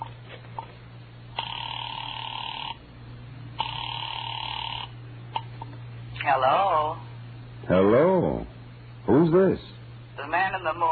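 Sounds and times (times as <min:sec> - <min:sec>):
telephone ringing after dialing: 0:01.3 - 0:02.8, 0:03.6 - 0:05.6
speech: 0:06.3 - 0:07.0, 0:07.7 - 0:08.5, 0:09.1 - 0:09.7, 0:10.3 - 0:10.9.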